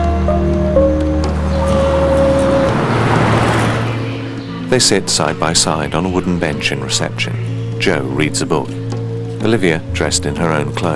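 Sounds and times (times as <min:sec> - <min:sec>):
car driving with steady low engine and road rumble: 0:00.7 - 0:07.8
tyre and traffic noise: 0:01.2 - 0:06.3
speech: 0:04.7 - 0:08.8, 0:09.4 - 0:10.9.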